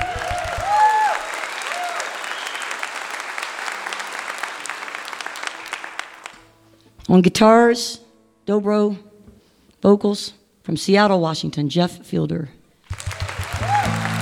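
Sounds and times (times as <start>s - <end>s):
audience applause welcoming a banjo player onto the stage at a live show: 0.0s - 6.5s, 12.9s - 14.2s
speech: 7.1s - 9.1s, 9.8s - 12.6s.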